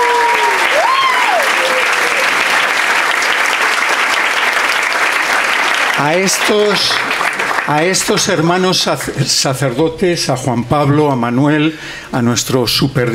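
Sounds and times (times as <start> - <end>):
whistles and cheering voices: 0.0 - 2.3
audience applauding: 0.0 - 9.1
speech: 6.0 - 7.1, 7.7 - 13.1.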